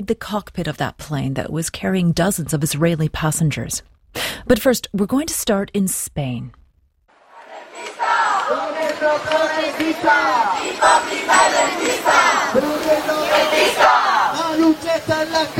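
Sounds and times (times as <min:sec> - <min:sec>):
speech: 0:00.0 - 0:06.6, 0:08.5 - 0:15.5
noisy street protest crowd in Madrid: 0:07.1 - 0:15.5.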